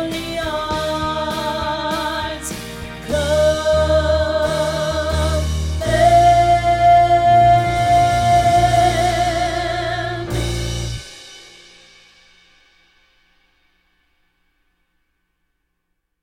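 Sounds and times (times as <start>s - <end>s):
isolated alto voice singing practice track: 0.0s - 11.0s.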